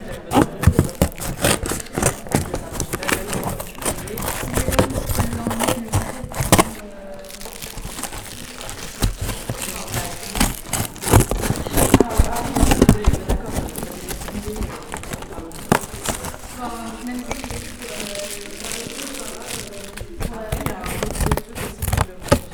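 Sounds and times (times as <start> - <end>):
cardboard being cut for ASMR: 0.0 - 22.5.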